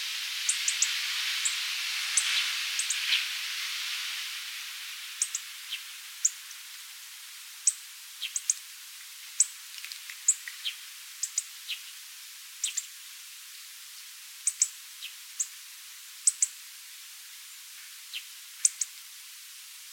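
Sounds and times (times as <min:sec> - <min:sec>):
soft background hiss: 0:00.0 - 0:19.9
hawfinch call notes: 0:00.5 - 0:01.6, 0:02.2 - 0:03.1, 0:05.2 - 0:05.5, 0:07.6 - 0:08.6, 0:09.4 - 0:11.8, 0:12.6 - 0:12.9, 0:14.4 - 0:15.5, 0:16.3 - 0:16.6, 0:18.2 - 0:19.0.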